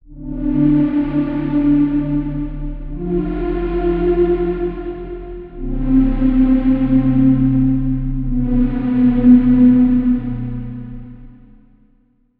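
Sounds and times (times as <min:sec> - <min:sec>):
synth pad: 0:00.0 - 0:12.0.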